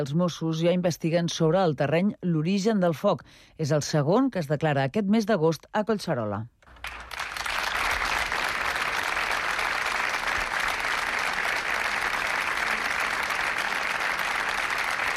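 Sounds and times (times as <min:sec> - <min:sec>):
speech: 0:00.0 - 0:07.1
crowd applause breaking a minute of silence: 0:06.7 - 0:15.1.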